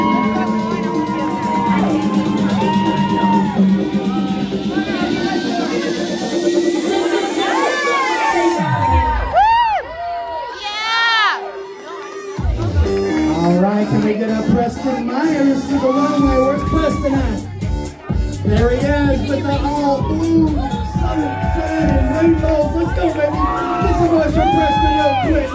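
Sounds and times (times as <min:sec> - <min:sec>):
high-pitched whoops and yells: 0:00.0 - 0:04.6, 0:07.4 - 0:12.5, 0:15.5 - 0:17.4, 0:19.8 - 0:25.5
crowd cheering and shouting: 0:00.0 - 0:25.5.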